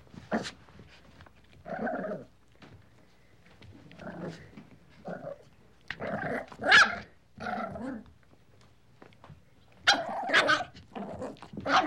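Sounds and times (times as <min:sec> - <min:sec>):
puppy playfully barking, growling and yelping: 0:04.0 - 0:08.1, 0:09.8 - 0:11.8.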